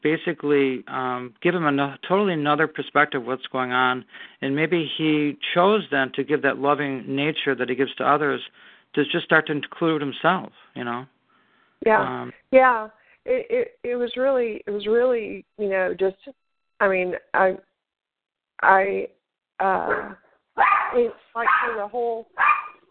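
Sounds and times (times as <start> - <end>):
speech: 0.0 - 11.2, 11.8 - 17.7, 18.6 - 22.6
pet dog barking: 19.9 - 21.8, 22.4 - 22.8.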